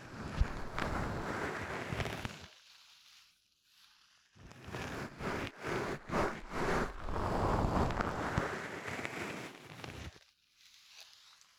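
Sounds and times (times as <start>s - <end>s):
ear cleaning on both ears ASMR: 0.3s - 1.3s, 4.9s - 10.1s.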